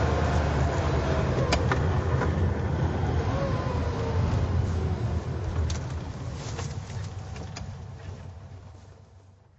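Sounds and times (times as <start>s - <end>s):
Porsche 911 driving: 0.0s - 9.5s.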